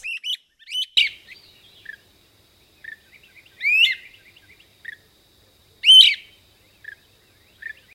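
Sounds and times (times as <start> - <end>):
Great crested flycatcher wheep calls: 0.0 - 1.5, 3.5 - 4.2, 5.8 - 6.3.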